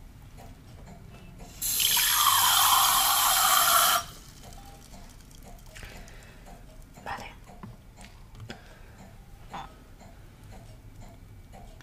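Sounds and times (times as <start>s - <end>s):
water poured into a wine glass: 1.6s - 4.2s.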